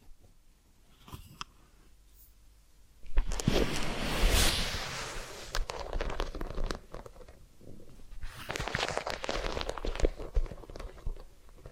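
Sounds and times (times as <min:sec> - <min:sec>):
massage and ear cleaning rubbing and scratching: 0:03.1 - 0:11.7.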